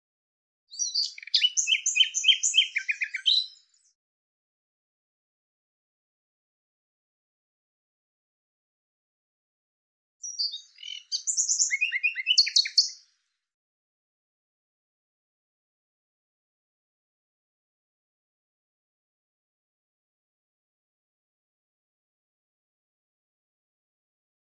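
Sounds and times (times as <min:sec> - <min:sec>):
bird singing buzzy chirps: 0:00.8 - 0:03.9, 0:10.2 - 0:13.0.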